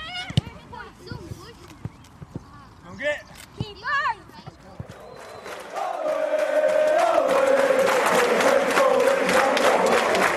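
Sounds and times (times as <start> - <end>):
big sports crowd cheering: 4.9 - 10.3.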